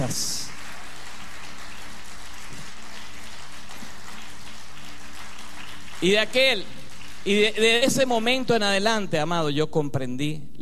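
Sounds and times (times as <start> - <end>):
audience applause: 0.0 - 8.0
speech: 0.1 - 0.3, 6.0 - 10.6.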